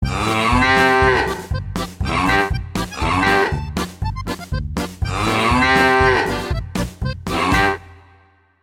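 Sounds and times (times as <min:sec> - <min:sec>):
Bavarian cow: 0:00.0 - 0:03.7, 0:05.1 - 0:06.6, 0:07.3 - 0:07.8.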